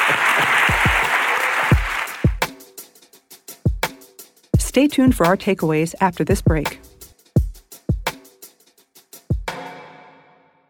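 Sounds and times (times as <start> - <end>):
audience round of applause: 0.0 - 2.4
speech: 0.1 - 0.8, 4.8 - 6.9.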